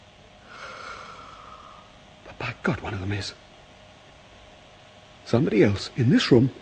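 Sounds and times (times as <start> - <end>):
person breathing: 0.4 - 2.0
speech: 2.4 - 3.4, 5.3 - 6.6.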